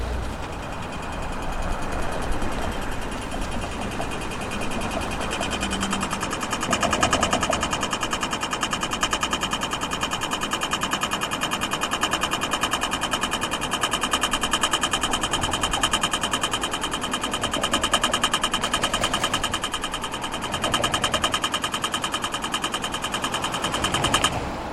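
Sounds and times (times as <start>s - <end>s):
ticking: 0.2s - 24.6s
tram siren: 0.4s - 24.4s.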